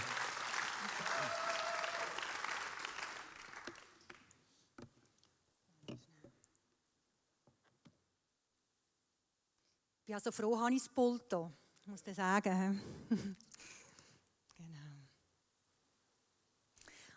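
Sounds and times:
audience applause: 0.0 - 4.3
laughter: 0.7 - 2.2
speech: 10.1 - 13.8.

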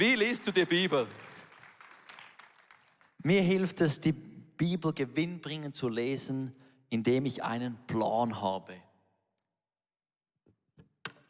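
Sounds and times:
speech: 0.0 - 1.3, 3.2 - 8.8
audience applause: 0.0 - 3.2.

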